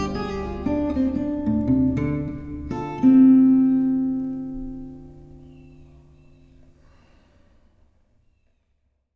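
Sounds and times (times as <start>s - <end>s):
acoustic blues guitar in D minor: 0.0s - 6.8s.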